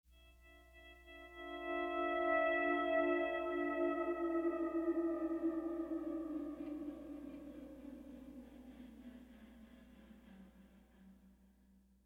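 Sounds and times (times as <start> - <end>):
pleasant guitar playing: 0.7 - 8.4.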